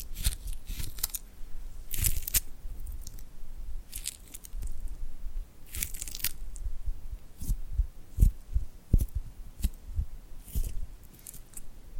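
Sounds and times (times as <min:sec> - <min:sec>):
sticky crackling peels of glued hands: 0:00.0 - 0:01.3, 0:01.9 - 0:03.3, 0:03.9 - 0:05.0, 0:05.6 - 0:06.7, 0:07.4 - 0:09.8, 0:10.4 - 0:11.7.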